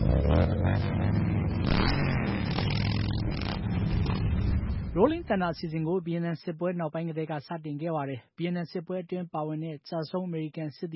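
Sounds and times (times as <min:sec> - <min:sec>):
many motorcycles riding through Washington DC in the Rolling Thunder rally: 0:00.0 - 0:05.1
speech: 0:05.0 - 0:10.9.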